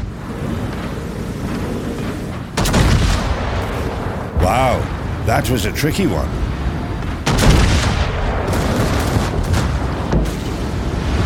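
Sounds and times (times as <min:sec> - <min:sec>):
rumbling wash of engine, sea and wind noise: 0:00.0 - 0:11.2
battleship Wisconsin guns firing in a naval video game: 0:02.6 - 0:04.0, 0:07.1 - 0:10.8
speech: 0:04.4 - 0:06.5.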